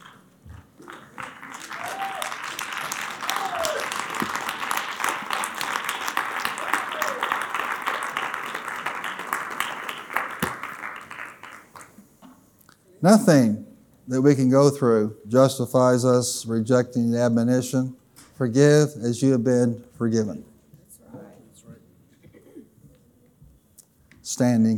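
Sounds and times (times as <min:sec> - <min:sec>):
audience clapping hands: 0:00.0 - 0:12.2
speech: 0:13.0 - 0:20.5, 0:24.4 - 0:24.7.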